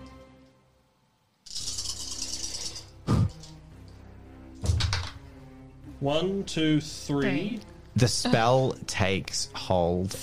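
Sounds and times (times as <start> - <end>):
dice rattling and rolling: 1.5 - 3.5, 4.7 - 5.2
dice knocking thuds as they land: 4.6 - 5.2
speech: 6.0 - 10.2.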